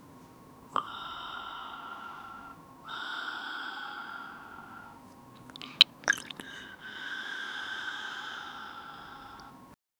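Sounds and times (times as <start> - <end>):
person sipping a glass of whisky: 0.7 - 9.6.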